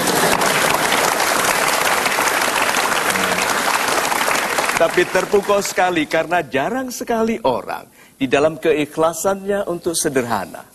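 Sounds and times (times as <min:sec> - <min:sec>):
audience applause at a motivational talk: 0:00.0 - 0:06.0
speech: 0:04.8 - 0:10.7.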